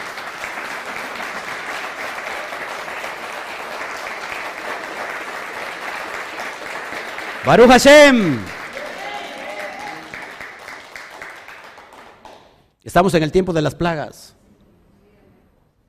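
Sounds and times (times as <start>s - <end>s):
audience applause: 0.0s - 12.6s
speech: 7.4s - 8.6s, 13.0s - 14.4s.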